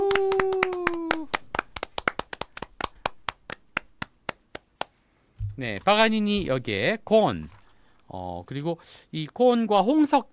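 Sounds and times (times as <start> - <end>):
audience applause before a song from a musical: 0.0 - 3.8
speech: 5.6 - 10.3.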